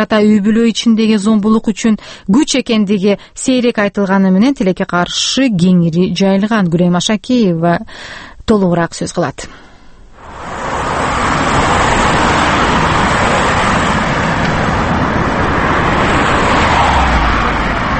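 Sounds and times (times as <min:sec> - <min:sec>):
speech: 0:00.0 - 0:09.7
car traffic on a busy Moscow street: 0:10.0 - 0:17.9.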